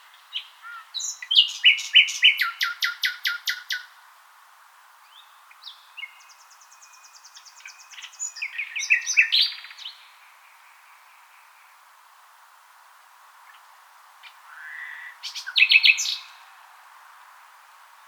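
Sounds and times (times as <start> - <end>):
Common nightingale singing: 0.0 - 3.9, 5.1 - 11.8, 13.5 - 16.5
faint hiss: 0.0 - 18.0.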